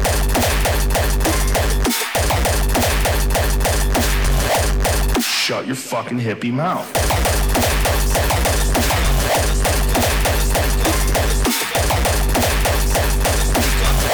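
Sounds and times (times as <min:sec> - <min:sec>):
hardcore stomp beats: 0:00.0 - 0:05.5, 0:06.9 - 0:14.1
speech: 0:05.7 - 0:07.8
gunshot-like bursts through the speakers: 0:07.0 - 0:14.1.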